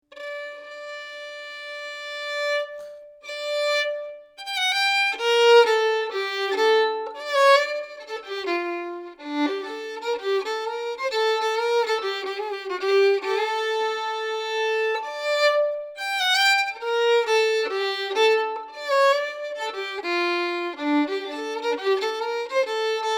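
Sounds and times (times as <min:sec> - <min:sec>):
practice piece in G minor at practice tempo: 0:00.0 - 0:23.1.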